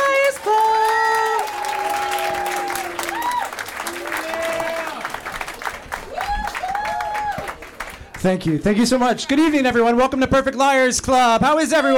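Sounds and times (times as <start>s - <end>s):
audience applause welcoming the host of the Perfect Liars Club: 0.0s - 9.2s
scattered cheering voices: 0.0s - 9.5s
speech: 8.2s - 11.9s.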